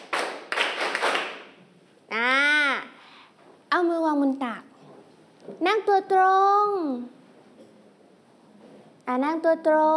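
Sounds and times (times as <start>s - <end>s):
children clapping hands: 0.0s - 1.5s
speech: 3.8s - 4.7s, 5.5s - 7.2s, 9.1s - 9.9s.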